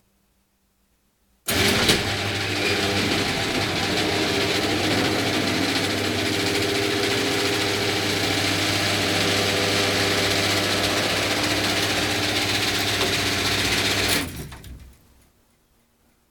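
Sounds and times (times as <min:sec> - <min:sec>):
electric garage door opening: 0:01.5 - 0:15.0.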